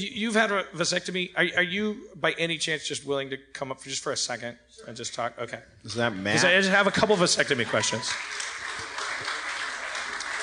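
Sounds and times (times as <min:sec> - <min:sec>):
speech: 0:00.0 - 0:08.6
very light audience applause: 0:06.4 - 0:10.4.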